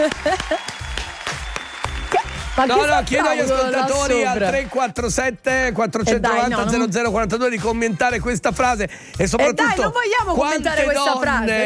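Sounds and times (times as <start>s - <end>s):
speech: 0.0s - 1.0s, 2.6s - 11.6s
applause: 0.0s - 5.0s.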